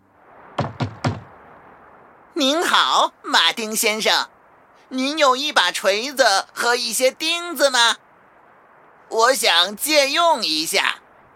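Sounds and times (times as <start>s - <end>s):
knocking on a front door: 0.6s - 1.3s
speech: 2.4s - 8.0s, 9.1s - 11.0s.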